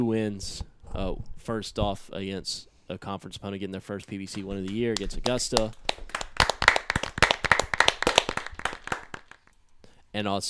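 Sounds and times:
speech: 0.0s - 6.2s, 10.2s - 10.4s
hands clapping: 4.0s - 9.5s.

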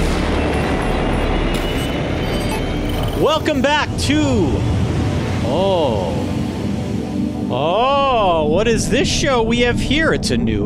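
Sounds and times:
rocket liftoff roar during a launch countdown: 0.0s - 10.6s
speech: 3.2s - 4.8s, 5.5s - 6.2s, 7.5s - 10.6s.

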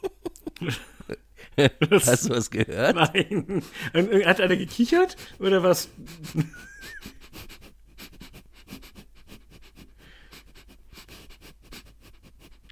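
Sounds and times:
laughter: 0.0s - 7.4s
speech: 0.6s - 7.0s
quick sniffing: 6.0s - 12.7s.

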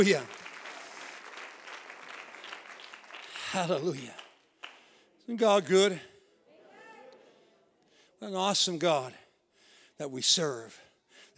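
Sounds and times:
speech: 0.0s - 0.4s, 3.5s - 4.2s, 5.3s - 6.1s, 8.2s - 9.2s, 10.0s - 10.8s
audience clapping hands: 0.0s - 5.0s.

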